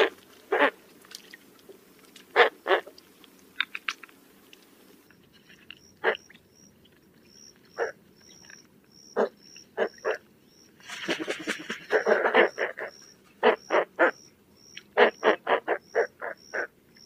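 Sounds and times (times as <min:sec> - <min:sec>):
spoonbill grunting: 0:00.0 - 0:00.8, 0:09.2 - 0:10.2, 0:10.8 - 0:14.3, 0:14.9 - 0:16.8.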